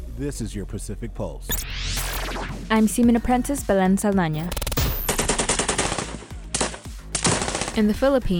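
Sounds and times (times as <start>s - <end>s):
speech: 0.2s - 4.7s, 7.7s - 8.3s
live-fire gunshots from U.S. and Philippine Marines during squad attacks in the Philippines: 4.3s - 8.2s.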